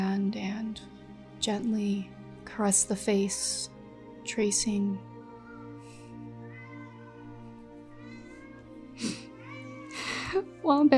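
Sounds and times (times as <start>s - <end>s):
speech: 1.4s - 5.1s, 10.6s - 10.9s
pet cat meowing: 5.2s - 10.4s.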